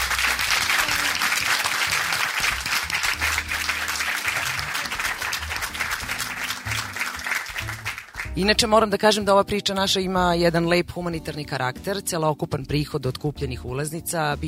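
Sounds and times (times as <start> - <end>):
audience applause at a live event: 0.0 - 8.4
speech: 8.4 - 14.4.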